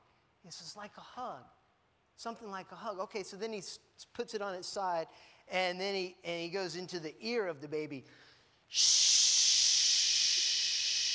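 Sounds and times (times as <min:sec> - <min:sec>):
speech: 0:00.4 - 0:01.6, 0:02.2 - 0:09.4
person shushing imitating white noise: 0:08.7 - 0:11.1.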